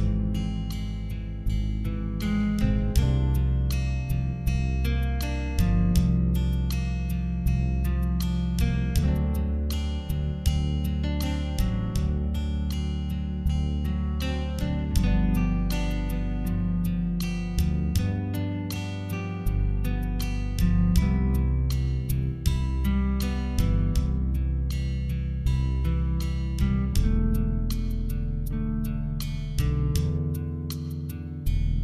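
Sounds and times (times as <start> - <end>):
rhythm track: 0.0 - 31.8.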